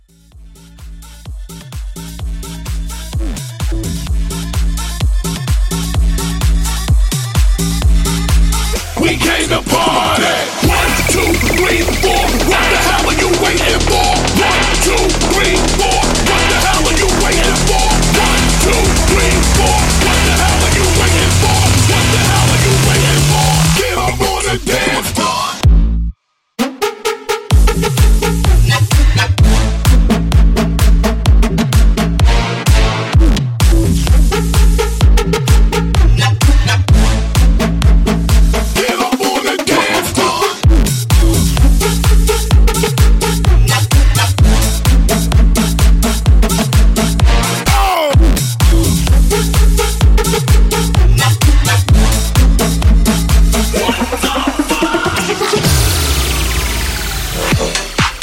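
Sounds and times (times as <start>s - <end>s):
bass house music at 128 BPM: 0.0s - 58.2s.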